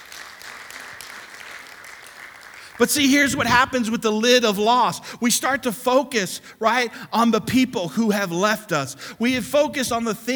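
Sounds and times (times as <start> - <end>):
audience applause: 0.0 - 2.8
speech: 2.8 - 10.3.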